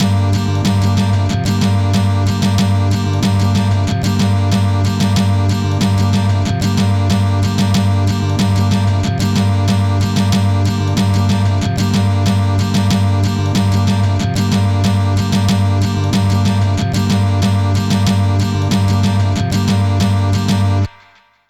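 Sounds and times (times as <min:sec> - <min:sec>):
guitar strumming: 0:00.0 - 0:21.2.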